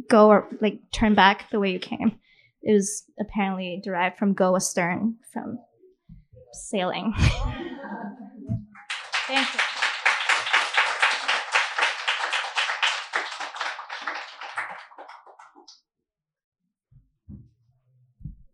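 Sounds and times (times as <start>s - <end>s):
speech: 0.0s - 5.7s, 6.5s - 8.2s, 9.3s - 9.7s
audience applause: 8.8s - 15.7s.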